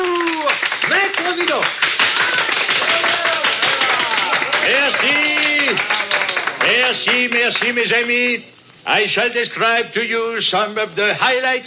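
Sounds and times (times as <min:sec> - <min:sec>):
audience applause greeting a performer on stage: 0:00.0 - 0:07.8
speech: 0:01.4 - 0:01.8, 0:06.9 - 0:11.6.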